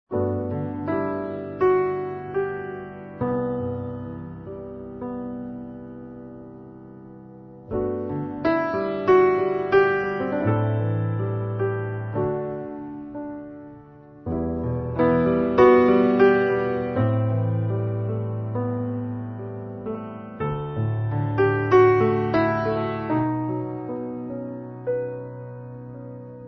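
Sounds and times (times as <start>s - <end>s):
solo piano: 0.1s - 26.4s.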